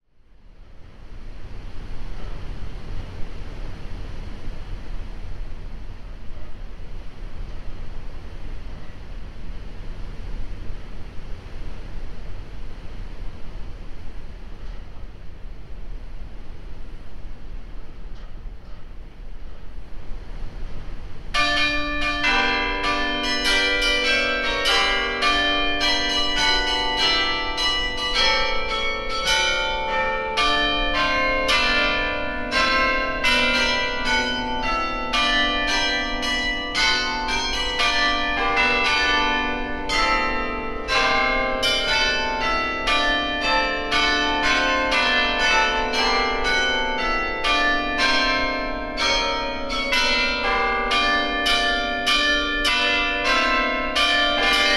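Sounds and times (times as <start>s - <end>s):
carillon bells: 21.4s - 54.7s.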